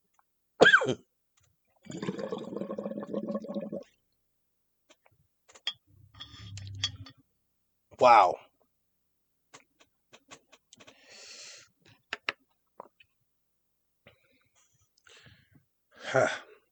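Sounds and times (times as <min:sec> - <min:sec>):
person coughing: 0:00.6 - 0:01.0
speech: 0:00.8 - 0:01.1, 0:08.0 - 0:08.5, 0:16.1 - 0:16.4
water bubbling: 0:01.9 - 0:03.9.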